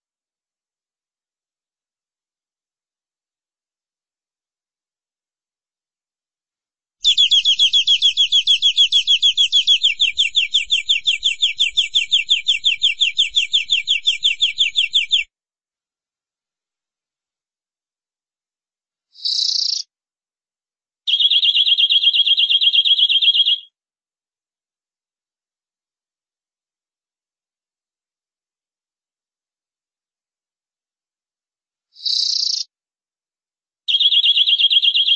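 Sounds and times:
canary song trills: 0:07.0 - 0:15.3, 0:19.2 - 0:19.9, 0:21.1 - 0:23.7, 0:32.0 - 0:32.7, 0:33.9 - 0:35.1.

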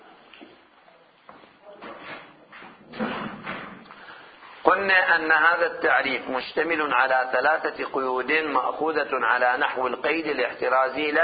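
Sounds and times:
door pushed shut with a dull thud: 0:02.9 - 0:03.8
speech: 0:04.7 - 0:11.2.

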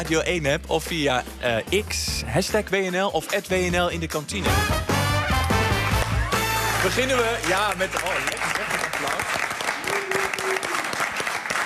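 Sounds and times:
speech: 0:00.0 - 0:04.9, 0:06.8 - 0:09.4
studio audience applause in a canteen: 0:05.2 - 0:11.6.

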